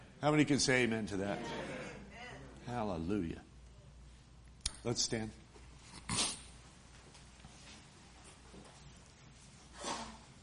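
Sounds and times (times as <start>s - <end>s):
speech: 0.2s - 1.7s, 2.7s - 3.5s, 4.8s - 5.4s
person sneezing: 6.0s - 6.5s, 9.7s - 10.4s.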